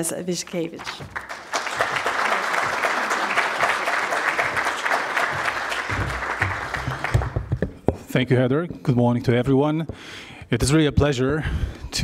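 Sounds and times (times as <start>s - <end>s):
speech: 0.0s - 1.4s, 8.1s - 12.0s
audience applause: 0.8s - 7.6s.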